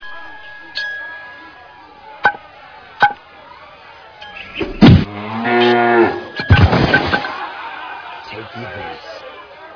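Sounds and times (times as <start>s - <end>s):
cow: 5.0s - 6.4s
laughter: 6.6s - 9.7s.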